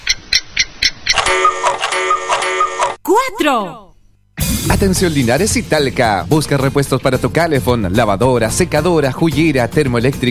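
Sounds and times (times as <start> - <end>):
clock ticking: 0.0 - 3.0
speech: 3.1 - 3.9, 4.7 - 10.2.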